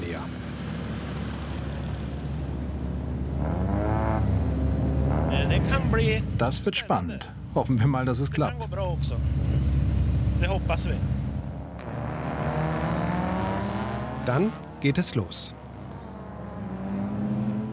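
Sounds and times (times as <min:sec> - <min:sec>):
race cars accelerating on a dirt track: 0:00.0 - 0:06.5, 0:08.0 - 0:17.7
speech: 0:05.9 - 0:09.5, 0:10.4 - 0:11.2, 0:14.3 - 0:15.6.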